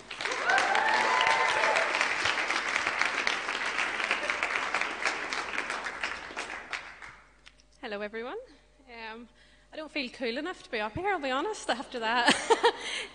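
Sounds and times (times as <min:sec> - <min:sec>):
audience applause: 0:00.0 - 0:07.2
speech: 0:09.2 - 0:13.1.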